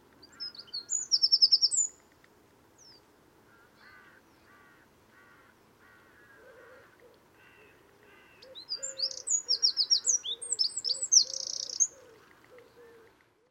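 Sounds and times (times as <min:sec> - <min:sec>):
other birds chirping: 0:00.1 - 0:02.1, 0:02.8 - 0:13.2
Eurasian wren trilling song: 0:00.2 - 0:02.0, 0:08.2 - 0:13.0.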